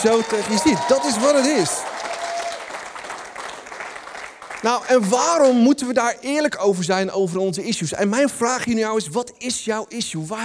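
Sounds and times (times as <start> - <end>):
speech: 0.0 - 2.0, 4.6 - 10.4
audience applause: 0.0 - 5.4.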